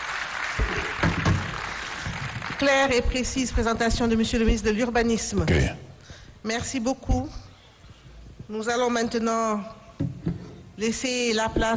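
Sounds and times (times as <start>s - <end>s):
audience applause: 0.0s - 2.7s
speech: 2.6s - 5.8s, 6.4s - 7.4s, 8.5s - 9.8s, 10.8s - 11.7s.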